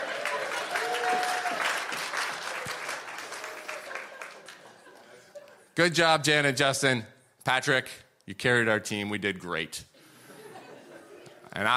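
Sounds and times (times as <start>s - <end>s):
applause: 0.0s - 5.2s
laughter: 3.3s - 5.8s, 10.1s - 11.7s
speech: 5.8s - 9.9s, 11.6s - 11.7s.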